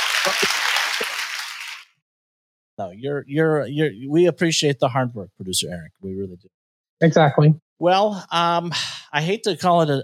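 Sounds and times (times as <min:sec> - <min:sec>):
applause: 0:00.0 - 0:02.0
speech: 0:00.2 - 0:00.5, 0:02.8 - 0:10.0.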